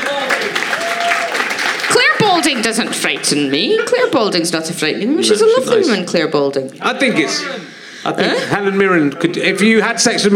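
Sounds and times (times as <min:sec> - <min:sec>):
audience applause: 0:00.0 - 0:04.0
speech: 0:02.5 - 0:10.3.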